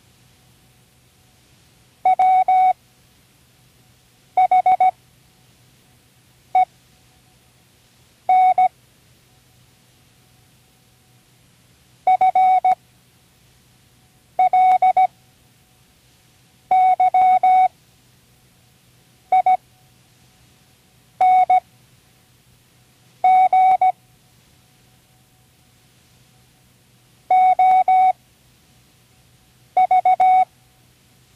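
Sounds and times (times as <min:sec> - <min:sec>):
Morse code: 0:02.1 - 0:02.7, 0:04.4 - 0:04.9, 0:08.3 - 0:08.7, 0:12.1 - 0:12.8, 0:14.4 - 0:15.1, 0:16.7 - 0:17.7, 0:19.3 - 0:19.6, 0:21.2 - 0:21.6, 0:23.2 - 0:24.0, 0:27.3 - 0:28.2, 0:29.8 - 0:30.5.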